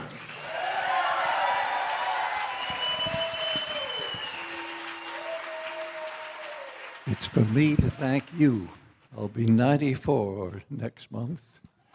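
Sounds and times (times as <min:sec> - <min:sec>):
audience applause welcoming a performer: 0:00.0 - 0:08.8
speech: 0:07.2 - 0:11.7.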